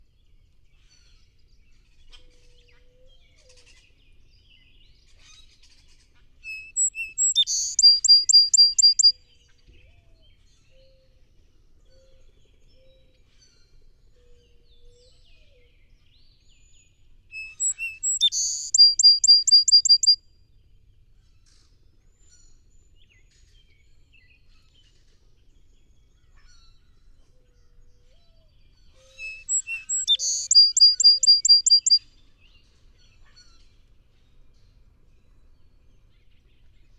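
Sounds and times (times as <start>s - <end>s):
song sparrow singing: 6.5s - 9.1s, 17.4s - 20.2s, 29.0s - 32.1s.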